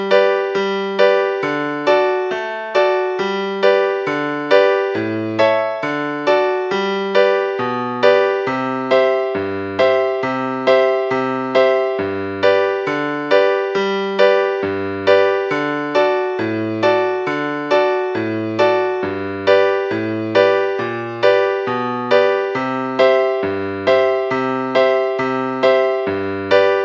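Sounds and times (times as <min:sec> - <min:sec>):
musical accompaniment: 0:00.0 - 0:26.8.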